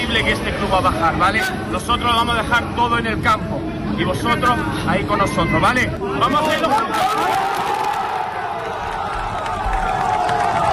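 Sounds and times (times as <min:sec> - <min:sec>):
speech: 0:00.1 - 0:07.6
football fans applauding and cheering: 0:06.9 - 0:10.7.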